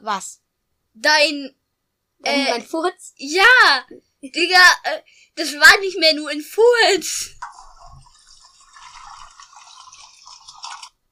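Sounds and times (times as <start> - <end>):
speech: 0.0 - 0.4, 1.0 - 1.6, 2.2 - 7.6
toilet flushing: 7.4 - 11.0.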